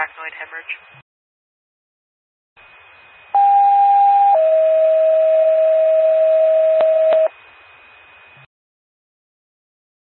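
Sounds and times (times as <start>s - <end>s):
ambulance dispatch pager alert tones: 3.4s - 7.3s.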